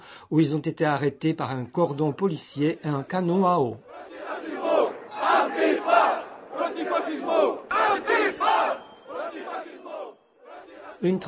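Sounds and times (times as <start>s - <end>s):
speech: 0.3s - 3.9s, 11.0s - 11.2s
protest crowd chanting slogans: 2.7s - 11.2s.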